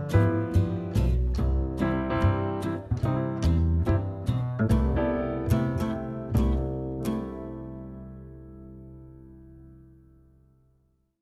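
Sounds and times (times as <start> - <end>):
drumset: 0.0 - 7.6.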